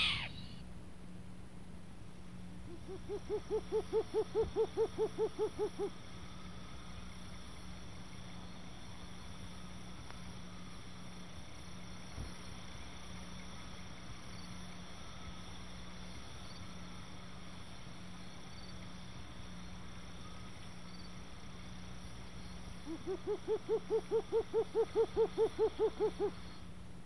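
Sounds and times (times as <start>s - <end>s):
short-eared owl call: 0.0s - 0.6s, 2.7s - 6.0s, 22.8s - 26.6s.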